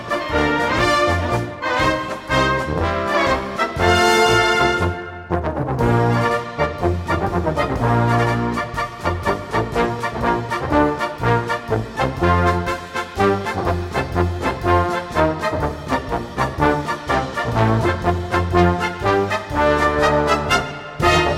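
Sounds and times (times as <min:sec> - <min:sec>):
march music: 0:00.0 - 0:21.3.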